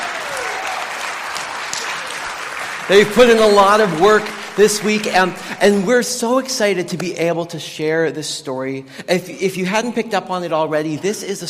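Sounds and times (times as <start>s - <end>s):
audience applause: 0.0s - 6.0s
speech: 2.9s - 11.4s.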